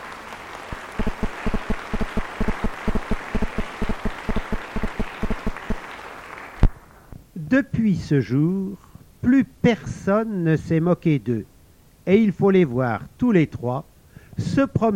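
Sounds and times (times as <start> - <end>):
crowd applauding loudly: 0.0 - 7.0
speech: 7.5 - 14.9.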